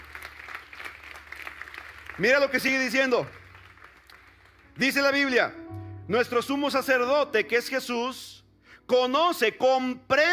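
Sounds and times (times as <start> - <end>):
audience applause: 0.0 - 4.8
speech: 2.2 - 3.4, 4.8 - 8.3, 8.9 - 10.3.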